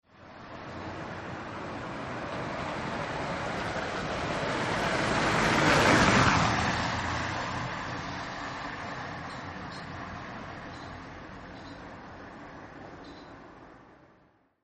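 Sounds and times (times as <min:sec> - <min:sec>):
car driving by: 0:00.6 - 0:11.5.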